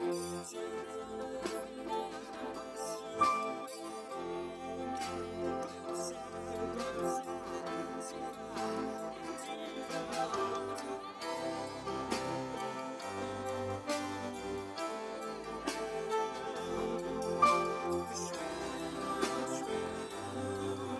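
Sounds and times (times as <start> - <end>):
piano: 0.0 - 20.9.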